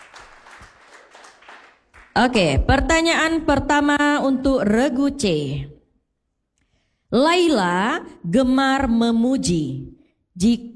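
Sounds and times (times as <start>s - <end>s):
faint audience applause at a quiz contest: 0.0s - 2.6s
speech: 2.2s - 5.7s, 7.1s - 10.7s.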